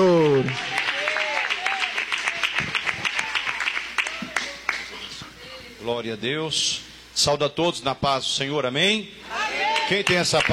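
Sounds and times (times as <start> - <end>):
audience applauding: 0.0 - 5.1, 9.6 - 10.5
speech: 6.0 - 10.5.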